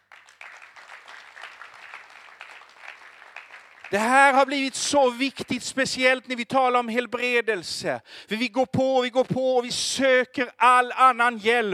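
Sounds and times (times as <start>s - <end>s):
audience applause: 0.0s - 4.2s
speech: 3.9s - 11.7s.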